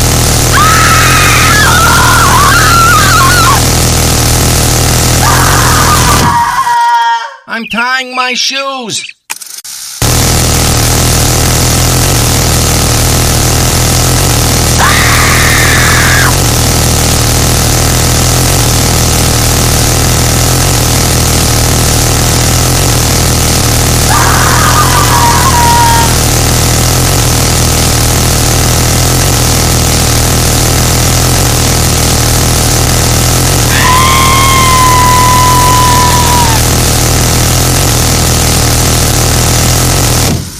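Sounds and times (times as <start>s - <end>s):
M134 minigun firing: 0.0s - 6.7s, 9.3s - 40.5s
speech: 7.8s - 9.2s.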